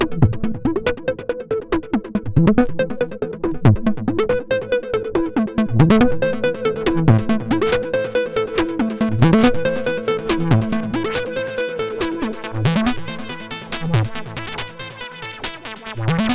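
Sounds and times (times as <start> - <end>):
Roland Juno-106 synthesizer arpeggio beat with external effects: 0.0 - 16.3.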